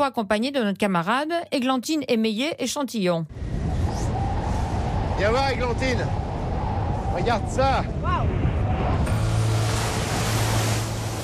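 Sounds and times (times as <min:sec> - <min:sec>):
speech: 0:00.0 - 0:03.6, 0:05.2 - 0:06.2, 0:07.2 - 0:08.4
gusting wind buffeting the microphone: 0:03.3 - 0:11.2
stormy ocean waves: 0:03.3 - 0:11.2.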